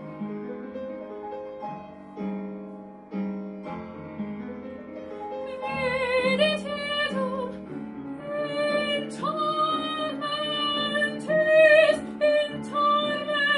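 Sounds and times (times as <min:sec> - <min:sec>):
soprano singing: 0:05.2 - 0:13.5.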